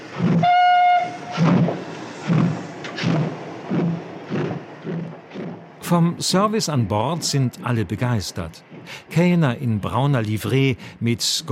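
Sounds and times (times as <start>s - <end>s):
night train rolling: 0.0s - 11.5s
locomotive whistle: 0.2s - 2.6s
speech: 5.9s - 11.5s.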